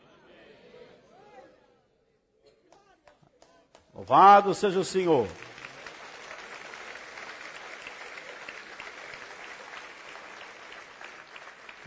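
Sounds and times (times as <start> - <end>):
speech: 4.0 - 5.4
audience applauding: 4.0 - 11.8.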